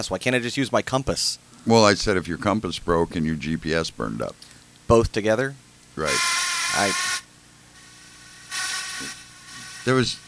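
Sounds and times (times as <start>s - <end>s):
speech: 0.0s - 7.2s, 9.8s - 10.2s
fishing reel drag buzzing: 6.0s - 10.2s.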